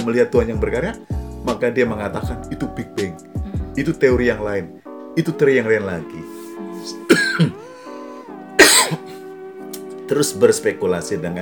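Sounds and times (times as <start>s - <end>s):
speech: 0.0s - 7.6s, 10.1s - 11.4s
throat clearing: 6.9s - 7.6s, 8.6s - 9.2s
cough: 7.1s - 7.6s, 8.6s - 9.2s.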